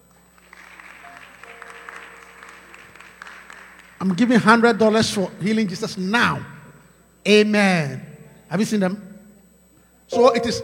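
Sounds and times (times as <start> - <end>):
audience clapping: 0.0 - 4.6
speech: 4.0 - 6.6, 7.2 - 9.1, 10.1 - 10.6.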